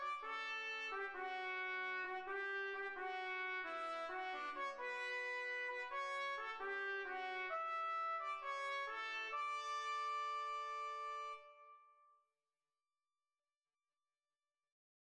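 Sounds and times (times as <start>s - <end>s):
trumpet: 0.0s - 11.8s.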